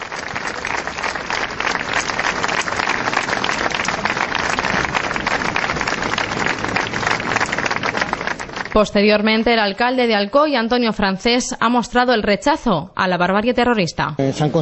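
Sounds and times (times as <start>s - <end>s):
applause from gathered crowd: 0.0s - 9.5s
speech: 8.8s - 14.6s.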